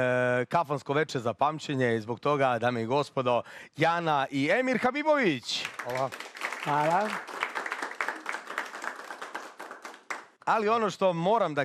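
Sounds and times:
speech: 0.0s - 7.4s, 10.5s - 11.6s
audience applause at a kafana evening after singers' performance: 5.5s - 10.4s.

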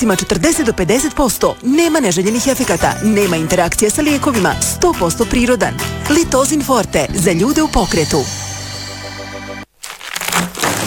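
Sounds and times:
speech: 0.0s - 8.4s
steady tonal hum: 7.2s - 9.6s
crunching bite of crispy pie: 9.7s - 10.8s.

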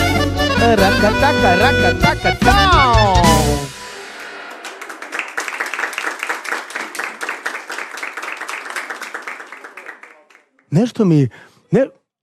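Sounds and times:
speech: 0.6s - 3.2s, 10.7s - 12.0s
weak applause from an audience: 4.2s - 10.8s.

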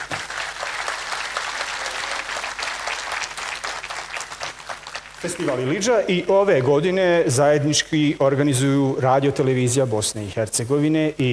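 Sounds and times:
audience applause for an orchestra at a festival: 0.0s - 5.8s
speech: 5.2s - 11.3s.

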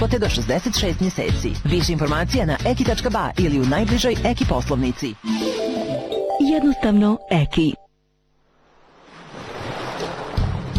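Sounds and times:
speech: 0.0s - 5.5s, 6.4s - 7.8s
ocean waves: 4.4s - 6.3s, 8.6s - 10.7s.

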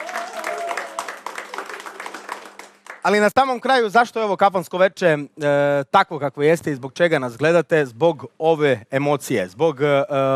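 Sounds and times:
audience clapping at a kafana-style music evening: 0.0s - 3.4s
speech: 3.0s - 10.3s.

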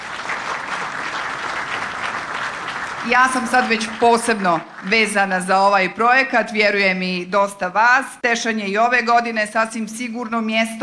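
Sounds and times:
audience applause at the 20th international trade fair in Tešanj: 0.0s - 5.2s
speech: 3.0s - 10.8s.

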